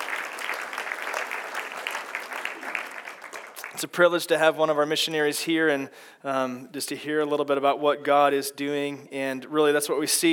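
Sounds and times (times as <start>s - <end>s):
audience applause: 0.0s - 3.8s
speech: 3.8s - 10.3s.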